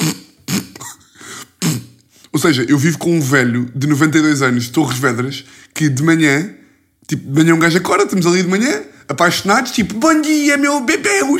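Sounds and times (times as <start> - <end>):
voice imitating harsh throat clearing from allergies: 0.0 - 2.1
speech: 2.3 - 11.3.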